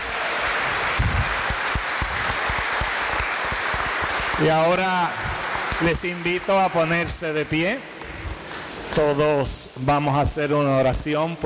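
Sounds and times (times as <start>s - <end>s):
audience applause: 0.0s - 8.7s
speech: 4.4s - 7.9s, 8.9s - 11.4s.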